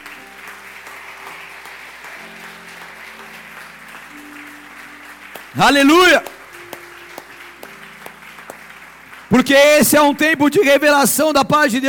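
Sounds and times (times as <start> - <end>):
audience applauding loudly: 0.0 - 11.3
speech: 5.6 - 6.3, 9.4 - 11.8.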